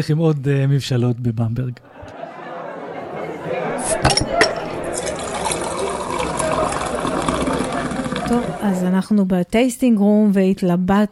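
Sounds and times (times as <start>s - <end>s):
speech: 0.0s - 2.0s, 8.3s - 11.1s
laughter: 1.8s - 8.9s
glass clinking: 3.8s - 8.6s
beer poured into a glass in a brewery tasting room in Bamberg: 3.8s - 8.7s.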